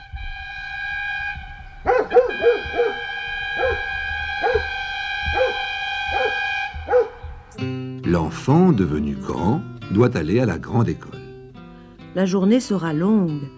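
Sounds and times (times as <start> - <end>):
bakery van horn calling customers: 0.0 - 10.0
speech: 8.1 - 11.2, 12.2 - 13.5.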